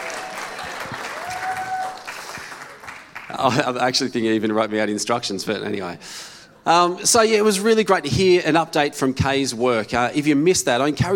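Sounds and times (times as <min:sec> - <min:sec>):
audience clapping: 0:00.0 - 0:03.7
speech: 0:03.3 - 0:11.1.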